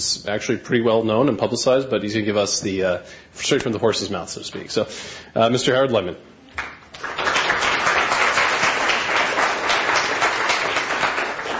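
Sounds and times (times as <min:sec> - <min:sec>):
speech: 0:00.0 - 0:06.7
crowd applause: 0:06.9 - 0:11.5.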